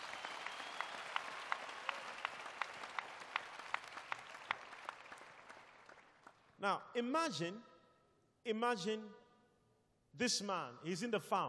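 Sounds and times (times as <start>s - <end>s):
audience clapping hands: 0.0s - 6.6s
speech: 6.6s - 7.7s, 8.4s - 9.2s, 10.1s - 11.4s.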